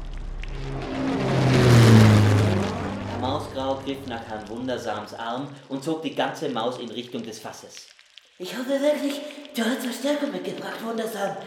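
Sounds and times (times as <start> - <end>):
droning hum: 0.0 - 4.8
speech: 3.8 - 11.4.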